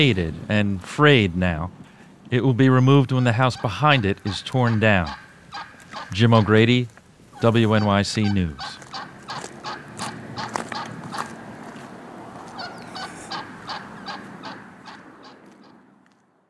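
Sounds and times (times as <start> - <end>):
speech: 0.0 - 8.8
wild turkey gobble: 3.0 - 11.4, 12.5 - 15.8.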